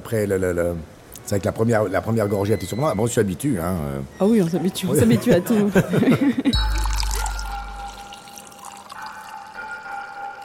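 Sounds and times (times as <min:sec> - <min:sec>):
speech: 0:00.1 - 0:06.4
laughter: 0:04.8 - 0:06.6
wine pouring into a glass: 0:06.6 - 0:10.4.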